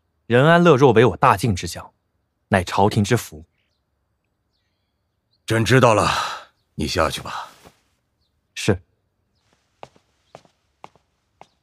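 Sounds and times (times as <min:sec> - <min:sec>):
speech: 0:00.3 - 0:03.5, 0:05.5 - 0:07.5, 0:08.6 - 0:08.9
crown prince's footsteps walking away: 0:09.4 - 0:11.6.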